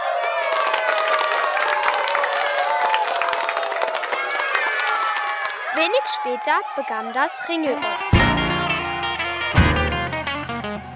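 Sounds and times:
thunderous applause: 0.0s - 5.8s
crowd cheering: 0.0s - 10.9s
speech: 5.8s - 8.4s.

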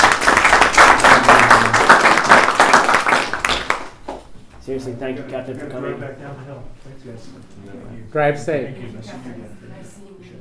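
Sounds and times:
group applauding: 0.0s - 4.3s
speech: 4.7s - 10.4s.

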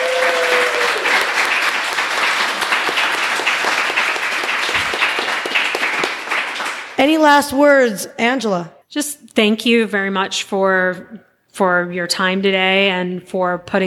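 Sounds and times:
round of applause: 0.0s - 7.2s
speech: 7.0s - 13.8s.

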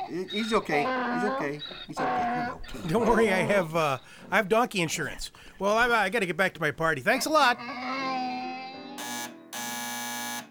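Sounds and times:
speech: 0.1s - 8.0s
harsh raspy electric door buzzer: 9.0s - 10.5s.

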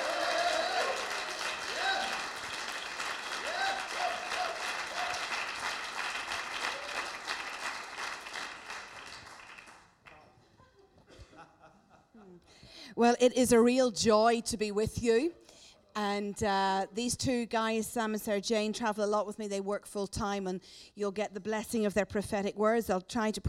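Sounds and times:
audience applause welcoming visiting speakers at a church gathering: 0.0s - 10.2s
laughter: 10.4s - 12.5s
speech: 13.0s - 15.4s, 16.0s - 23.4s.

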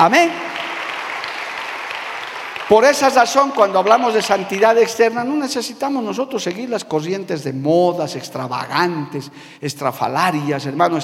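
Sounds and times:
speech: 0.0s - 0.5s, 2.7s - 11.0s
audience applauding: 0.0s - 5.0s.

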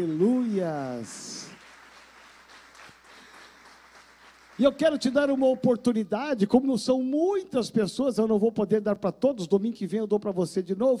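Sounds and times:
speech: 0.0s - 1.4s, 4.6s - 10.9s
audience applause: 0.0s - 5.6s.

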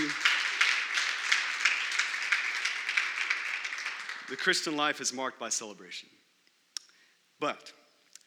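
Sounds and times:
church audience clapping: 0.0s - 5.2s
speech: 4.3s - 6.2s, 7.4s - 8.2s.

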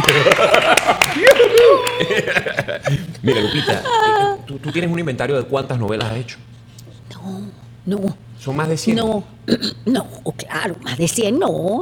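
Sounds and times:
studio audience applause on a television talk show greeting a guest: 0.0s - 2.4s
laughter: 0.0s - 5.0s
speech: 1.2s - 6.6s, 7.2s - 11.7s.

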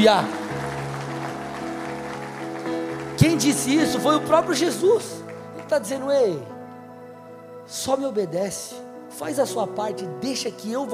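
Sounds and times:
speech: 0.0s - 0.4s, 3.2s - 6.6s, 7.7s - 10.9s
audience applause: 0.0s - 6.0s
sustained keyboard chords: 0.0s - 10.9s.

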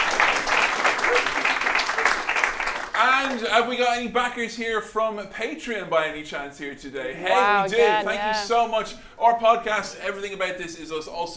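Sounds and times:
audience applause: 0.0s - 3.5s
speech: 3.3s - 11.3s.

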